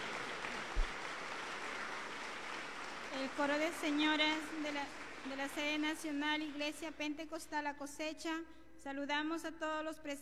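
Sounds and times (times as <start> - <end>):
audience applause: 0.0 - 6.6
speech: 3.2 - 10.2.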